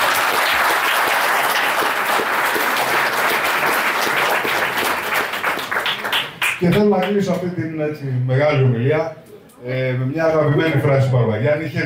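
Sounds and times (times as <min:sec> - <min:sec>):
audience applause: 0:00.0 - 0:07.2
speech: 0:06.6 - 0:11.8.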